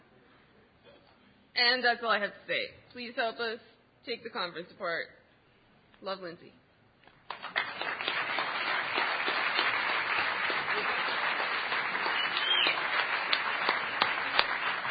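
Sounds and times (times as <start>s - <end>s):
speech: 1.6s - 5.2s, 6.0s - 6.6s
audience applause: 7.3s - 14.8s.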